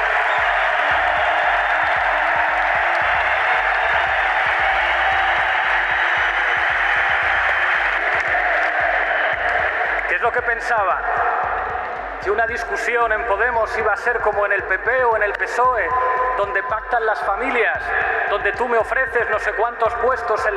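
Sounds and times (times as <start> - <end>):
crowd applause at a rally: 0.0 - 10.7
faint cheering: 0.0 - 12.1
speech: 10.6 - 11.2, 12.2 - 20.5.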